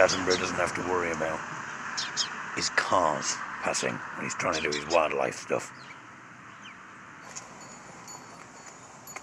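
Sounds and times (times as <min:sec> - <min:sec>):
speech: 0:00.0 - 0:05.9
wind chimes tinkling outdoors: 0:07.2 - 0:09.2.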